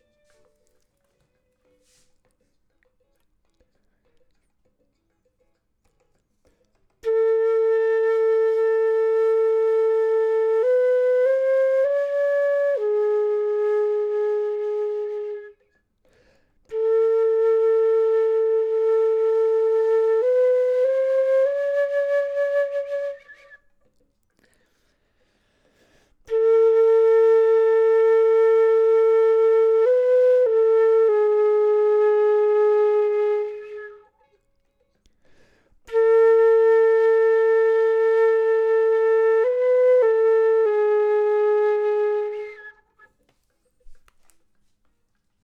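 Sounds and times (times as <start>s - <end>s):
flute: 7.0s - 24.1s, 26.2s - 34.5s, 35.8s - 44.4s.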